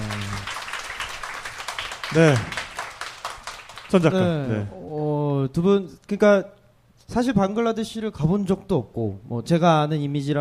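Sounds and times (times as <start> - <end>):
audience applause: 0.0 - 4.7
speech: 2.1 - 2.6, 3.9 - 10.4.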